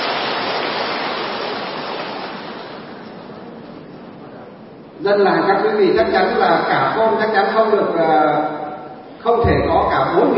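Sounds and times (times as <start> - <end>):
audience applause: 0.0 - 2.9
speech: 5.0 - 8.6, 9.2 - 10.3.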